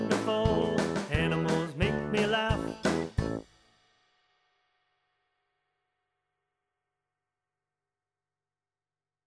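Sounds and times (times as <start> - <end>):
person practising vocals: 0.0 - 3.1.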